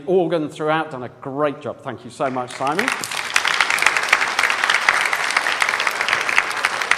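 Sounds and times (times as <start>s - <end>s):
speech: 0.0s - 3.2s
audience applause: 2.3s - 6.9s.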